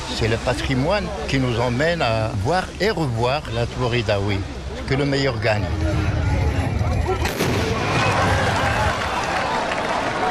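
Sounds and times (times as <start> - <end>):
crowd noise: 0.0 - 10.2
speech: 0.2 - 6.2
Tbourida horsemen's gunpowder rifle volley: 7.2 - 8.5.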